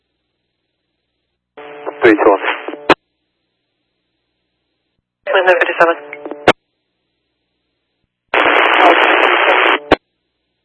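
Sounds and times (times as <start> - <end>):
radio static: 1.6 - 3.0, 5.3 - 6.6, 8.4 - 10.0
speech: 2.0 - 2.6, 5.5 - 6.2.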